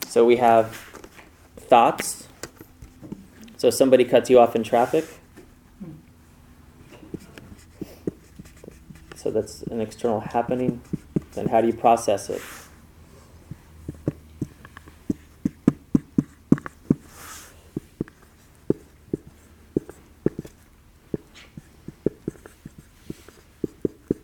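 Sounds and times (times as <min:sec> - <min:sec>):
speech: 0:00.1 - 0:00.9, 0:01.7 - 0:02.3, 0:03.6 - 0:05.2, 0:09.2 - 0:12.6
handwriting scratches: 0:06.8 - 0:24.2.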